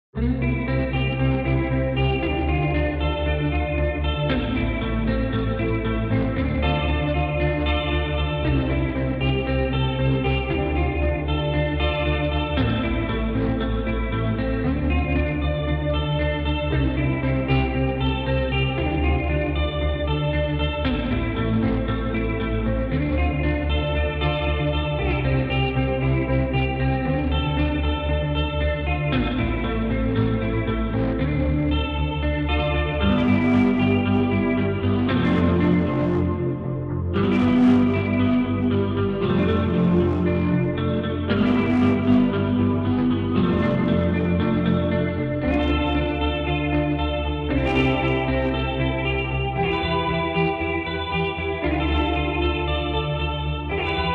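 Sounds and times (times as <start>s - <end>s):
instrumental music: 0.2s - 54.1s.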